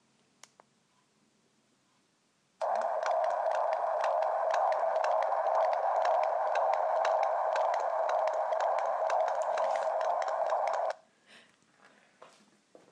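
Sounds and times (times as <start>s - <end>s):
baby heartbeat: 2.6s - 11.0s.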